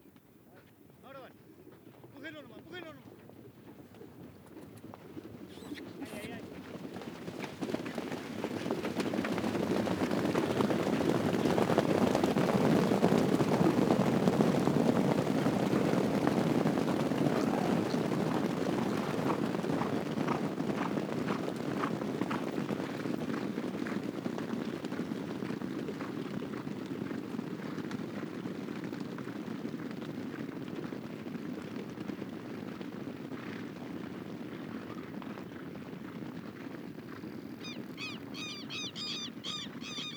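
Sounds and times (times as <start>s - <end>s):
herd of horses passing: 0.0s - 40.1s
people shouting to drive horses: 2.2s - 3.1s, 5.7s - 6.6s, 15.5s - 20.4s.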